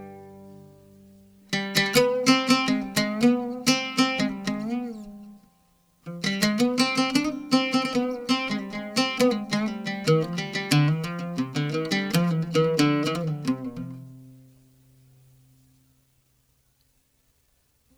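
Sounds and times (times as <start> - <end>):
oud taksim improvisation: 0.0 - 15.4.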